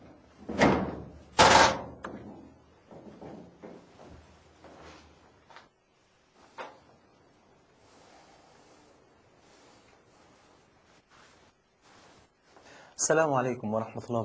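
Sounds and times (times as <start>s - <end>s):
loud clattering knocks at a house door: 0.4s - 4.1s
shuffling, rustling and handling sounds: 2.2s - 7.2s, 7.8s - 13.0s
speech: 13.0s - 14.2s.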